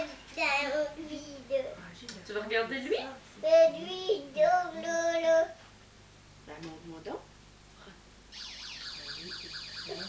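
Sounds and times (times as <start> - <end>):
speech: 0.4 - 5.6, 6.5 - 7.3
toy ambulance siren: 8.4 - 10.0.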